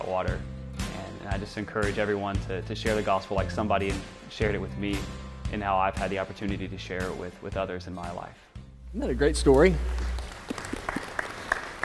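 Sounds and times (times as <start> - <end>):
speech: 0.1 - 0.6, 1.2 - 10.0
audience clapping: 9.2 - 11.8.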